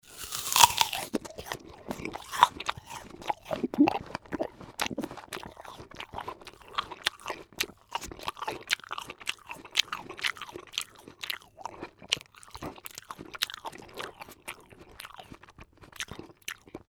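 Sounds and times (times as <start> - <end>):
person eating an apple: 0.0 - 16.9.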